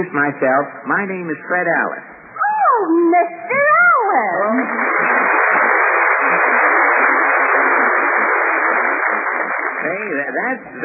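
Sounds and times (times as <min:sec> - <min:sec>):
speech: 0:00.0 - 0:02.1, 0:02.7 - 0:03.6, 0:04.2 - 0:05.1, 0:09.8 - 0:10.8
neighbours applauding: 0:04.3 - 0:10.8.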